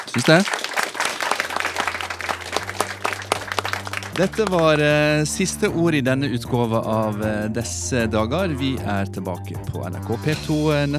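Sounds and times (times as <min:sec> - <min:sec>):
audience applause: 0:00.0 - 0:04.9
speech: 0:00.2 - 0:00.6, 0:04.2 - 0:10.9.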